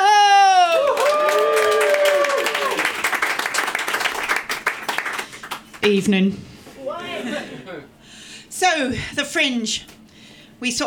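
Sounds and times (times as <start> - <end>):
audience whoops and cheers: 0.0 - 3.0
audience applause: 0.6 - 5.8
speech: 5.8 - 6.5, 8.6 - 10.0, 10.6 - 10.8.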